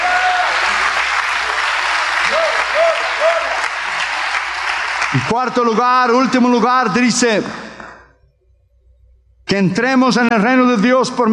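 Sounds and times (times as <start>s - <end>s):
audience applause: 0.0s - 6.0s
speech: 5.1s - 7.6s, 9.5s - 11.3s.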